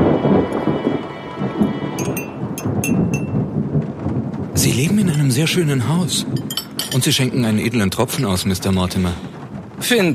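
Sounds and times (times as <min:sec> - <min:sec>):
thunderclap during a rainstorm: 0:00.0 - 0:10.1
speech: 0:04.7 - 0:10.1.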